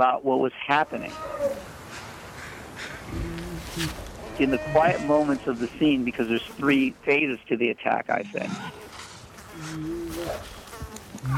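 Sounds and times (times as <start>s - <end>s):
speech: 0.0s - 1.7s, 3.1s - 8.8s
bugs buzzing: 0.8s - 11.3s.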